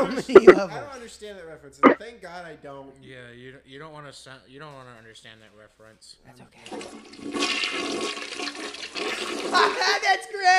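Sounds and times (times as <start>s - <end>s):
laughter: 0.0s - 0.9s, 9.5s - 10.5s
speech: 0.0s - 10.5s
toilet flushing: 6.6s - 9.9s.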